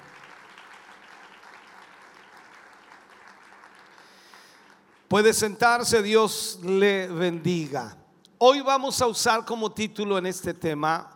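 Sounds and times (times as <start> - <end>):
audience applauding in praise: 0.0 - 5.1
speech: 5.1 - 11.1.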